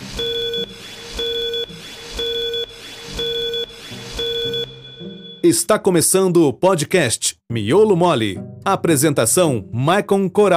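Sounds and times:
five-second time signal tone of short high beeps: 0.2s - 5.5s
speech: 5.4s - 10.5s.

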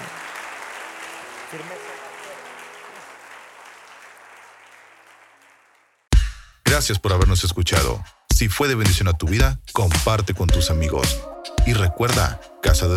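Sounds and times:
audience clapping: 0.0s - 6.1s
speech: 1.5s - 2.1s, 6.8s - 12.9s.

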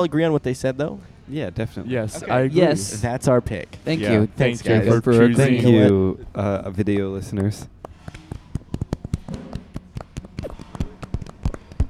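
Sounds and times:
speech: 0.0s - 8.2s
hands clapping into laps: 6.8s - 11.8s.

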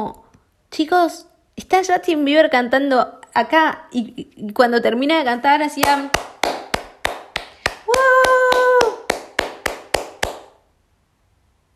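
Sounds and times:
speech: 0.0s - 6.3s
steady clapping after a song: 5.8s - 10.6s.

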